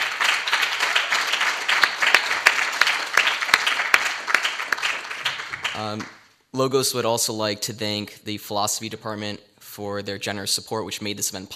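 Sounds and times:
audience applause: 0.0s - 6.2s
speech: 5.8s - 11.5s.

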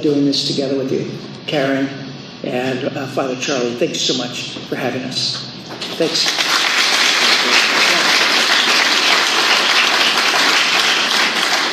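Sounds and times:
speech: 0.0s - 6.6s
audience applause: 5.8s - 11.7s.

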